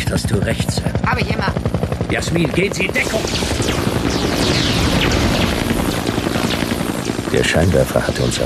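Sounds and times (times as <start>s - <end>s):
helicopter flying overhead: 0.0s - 8.4s
speech: 0.1s - 5.2s, 7.3s - 8.4s.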